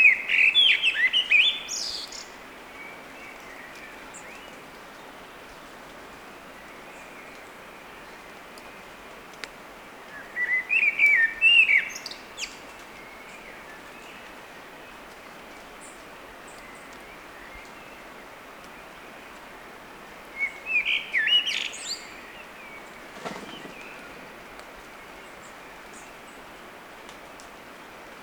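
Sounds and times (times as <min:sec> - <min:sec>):
Eurasian blackbird singing: 0:00.0 - 0:02.3, 0:20.4 - 0:24.3
faint hiss: 0:00.0 - 0:28.2.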